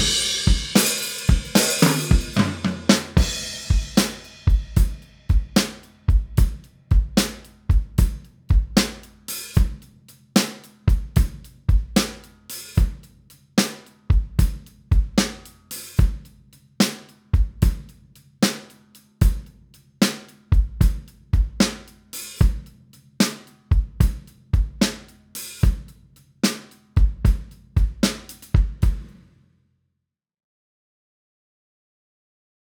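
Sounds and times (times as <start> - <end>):
dry drums: 0.0 - 29.3.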